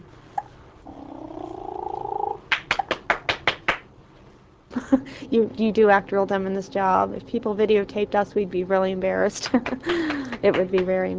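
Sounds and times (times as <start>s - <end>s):
woman making a purr-like sound with her voice: 0.8s - 2.5s
woman clapping her hands: 2.5s - 3.9s, 9.4s - 11.1s
speech: 4.9s - 11.1s.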